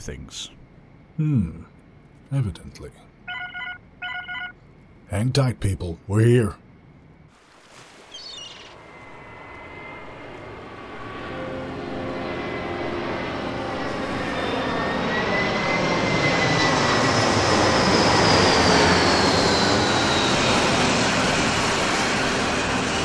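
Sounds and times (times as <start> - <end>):
speech: 0.0 - 0.6, 1.2 - 1.7, 2.3 - 3.1, 5.1 - 6.6
thrusters firing during a vertical landing: 8.0 - 23.0
jet engine roaring during a vertical landing: 8.2 - 23.0.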